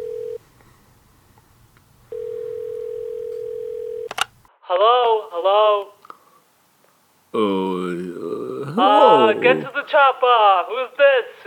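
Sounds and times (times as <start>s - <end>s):
telephone ringing: 2.1s - 4.1s
speech: 4.7s - 6.0s, 7.3s - 7.8s, 8.8s - 11.4s.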